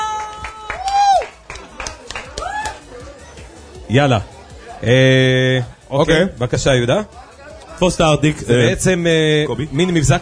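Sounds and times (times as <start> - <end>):
audience clapping: 0.0 - 2.9
speech: 3.9 - 10.2.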